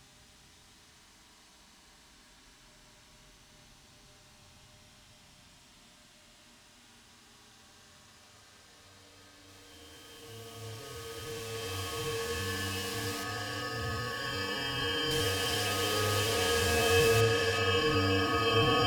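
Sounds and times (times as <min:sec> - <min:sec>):
ambient music: 0:09.6 - 0:18.8.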